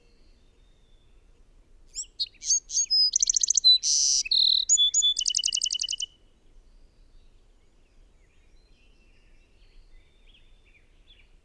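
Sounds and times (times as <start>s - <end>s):
bird song of whistles and repeated notes: 2.0s - 6.1s.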